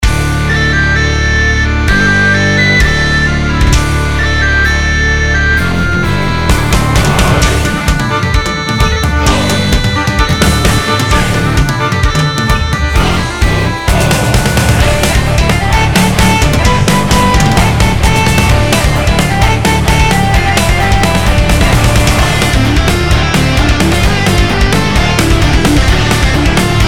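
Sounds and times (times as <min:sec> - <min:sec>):
folk metal theme: 0:00.0 - 0:26.8.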